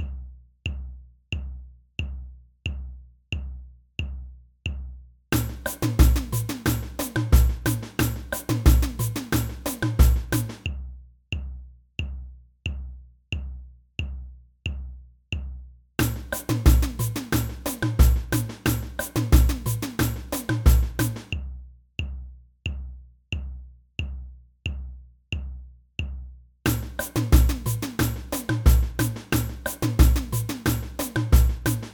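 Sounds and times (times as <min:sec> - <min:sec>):
surdo drum in a samba band: 0:00.0 - 0:10.8, 0:11.4 - 0:31.9
samba band: 0:05.4 - 0:10.6, 0:16.0 - 0:21.3, 0:26.7 - 0:31.9.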